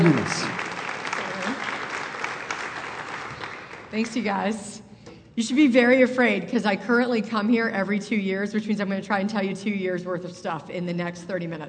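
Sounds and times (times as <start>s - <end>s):
speech: 0.0s - 0.6s, 3.9s - 4.8s, 5.4s - 11.6s
audience applause at a Bible teaching event: 0.0s - 3.9s.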